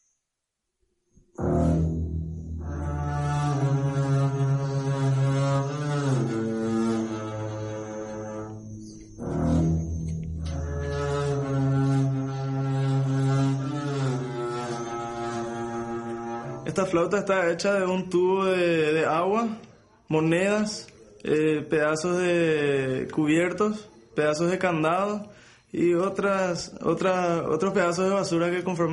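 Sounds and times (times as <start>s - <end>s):
homemade double bass built from a chemical drum, bowed: 1.4s - 17.1s
speech: 16.8s - 28.9s.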